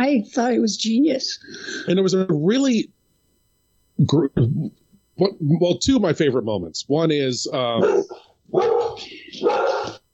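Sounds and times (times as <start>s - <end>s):
speech: 0.1s - 3.0s, 4.0s - 10.0s
dog barking: 7.8s - 10.0s.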